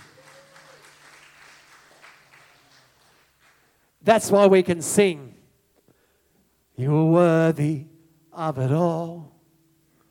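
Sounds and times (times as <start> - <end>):
audience clapping: 0.0 - 3.9
speech: 4.0 - 5.4, 6.8 - 9.3.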